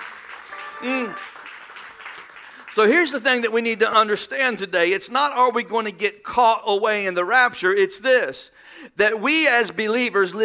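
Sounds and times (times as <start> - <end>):
church congregation clapping: 0.0 - 4.0
single voice rising over the applause: 0.8 - 1.2
speech: 0.8 - 1.3, 2.8 - 10.4.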